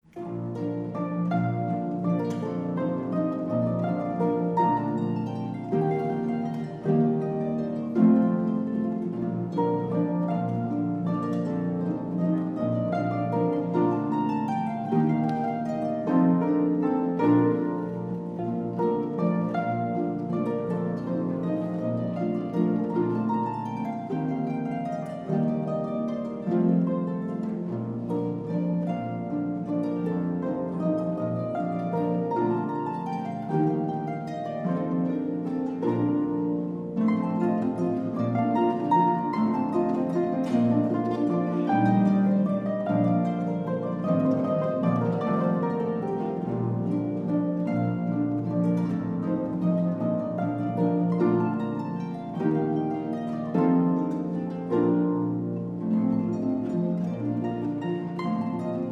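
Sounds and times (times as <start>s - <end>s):
symphony orchestra playing a divertimento waltz: 0.0s - 58.8s.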